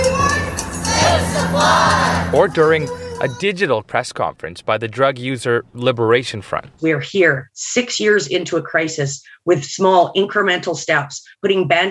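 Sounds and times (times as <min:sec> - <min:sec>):
protest rally crowd shouting: 0:00.0 - 0:02.6
speech: 0:01.6 - 0:11.8.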